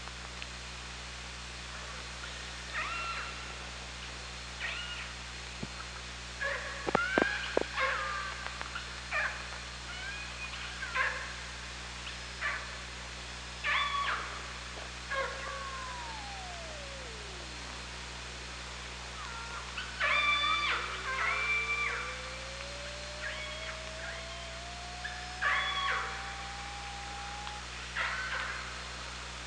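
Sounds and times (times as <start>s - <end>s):
constant low hum: 0.0s - 29.4s
killer whale calls: 20.0s - 27.6s.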